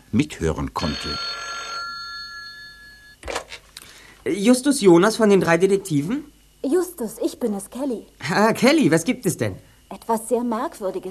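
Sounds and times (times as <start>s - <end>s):
speech: 0.1s - 1.3s, 4.2s - 11.1s
telephone ringing: 0.8s - 3.2s.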